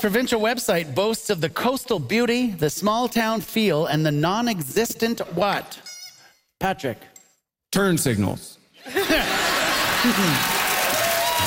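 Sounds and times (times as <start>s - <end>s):
speech: 0.0s - 5.8s, 6.6s - 7.1s, 7.7s - 9.4s, 10.0s - 10.6s
studio audience laughing: 8.8s - 11.4s
studio audience clapping: 9.2s - 11.4s.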